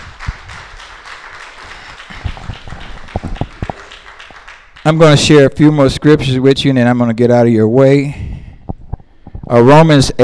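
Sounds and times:
audience clapping: 0.0s - 5.6s
speech: 4.8s - 8.3s, 9.5s - 10.2s.

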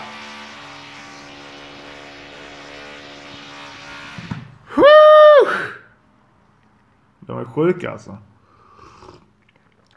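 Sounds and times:
neighbours drilling: 0.0s - 4.8s
speech: 7.5s - 8.3s.

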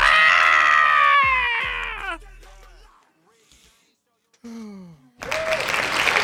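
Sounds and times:
loud whooping cheers: 0.0s - 2.2s, 5.2s - 6.2s
dense burst of hand clapping: 5.2s - 6.2s.

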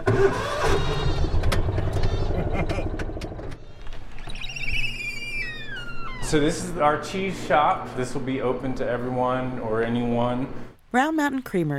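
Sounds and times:
car engine starting and running: 0.0s - 3.6s
speech: 0.2s - 1.3s, 6.3s - 11.7s.

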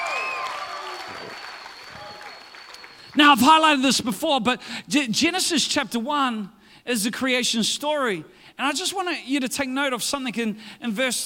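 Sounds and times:
audience clapping: 0.0s - 3.5s
speech: 3.2s - 11.2s.

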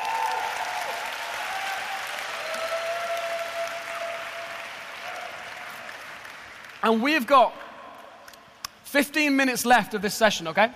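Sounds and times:
audience round of applause: 0.0s - 7.0s
speech: 6.8s - 7.6s, 8.9s - 10.7s.

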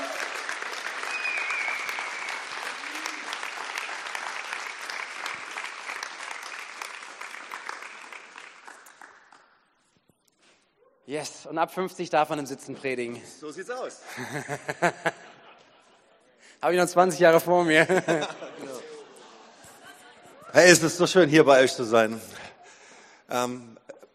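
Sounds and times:
audience applause: 0.0s - 9.5s
speech: 11.1s - 15.2s, 16.6s - 18.5s, 20.6s - 22.4s, 23.3s - 23.8s
laughter: 14.0s - 16.4s, 17.6s - 20.8s.

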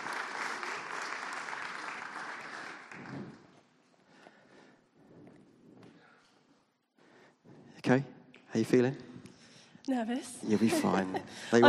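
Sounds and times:
audience giving long round of applause: 0.0s - 3.7s
speech: 7.8s - 9.1s, 9.9s - 11.6s.

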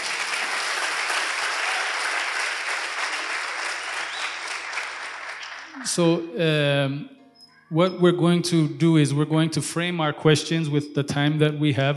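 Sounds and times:
audience clapping: 0.0s - 6.1s
speech: 5.8s - 11.9s.

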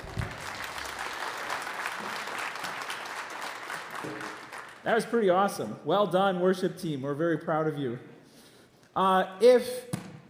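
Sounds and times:
audience applause: 0.0s - 4.8s
speech: 4.8s - 8.1s, 9.0s - 9.9s.

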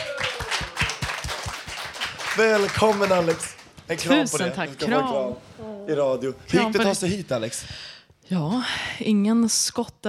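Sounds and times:
applause: 0.0s - 4.4s
speech: 2.4s - 10.0s.

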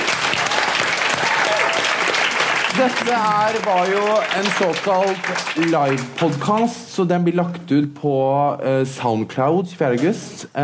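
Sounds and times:
live audience applause: 0.0s - 6.7s
speech: 2.8s - 10.6s.

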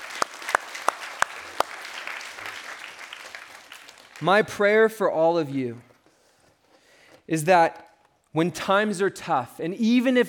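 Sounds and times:
audience clapping: 0.0s - 4.9s
speech: 4.2s - 5.9s, 7.3s - 7.8s, 8.4s - 10.2s.

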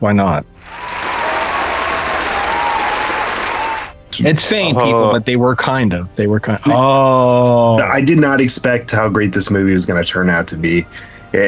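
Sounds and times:
speech: 0.0s - 1.0s, 4.2s - 11.4s
round of applause: 0.6s - 4.0s.

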